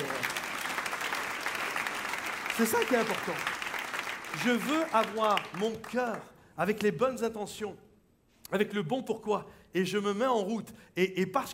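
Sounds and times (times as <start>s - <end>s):
audience applauding: 0.0s - 6.3s
speech: 2.6s - 3.6s, 4.3s - 7.8s, 8.5s - 11.5s.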